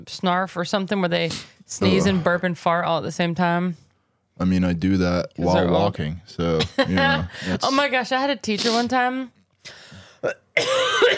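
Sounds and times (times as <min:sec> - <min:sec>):
speech: 0:00.0 - 0:03.8, 0:04.4 - 0:11.1
person clearing throat: 0:10.2 - 0:11.1.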